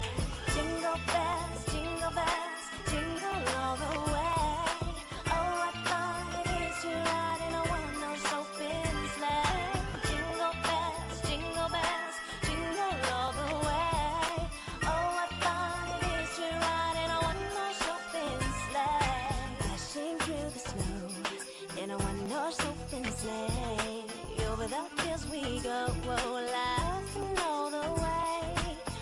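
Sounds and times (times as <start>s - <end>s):
Christmas song: 0.0s - 29.0s.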